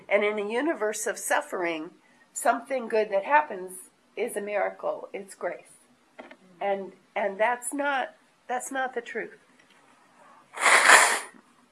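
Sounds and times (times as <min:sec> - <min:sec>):
speech: 0:00.1 - 0:09.4
nose blowing: 0:10.5 - 0:11.4.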